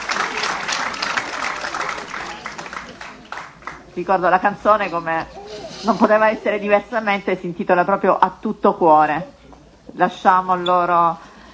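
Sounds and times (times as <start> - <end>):
crowd applauding: 0.0 - 4.2
speech: 4.0 - 11.3.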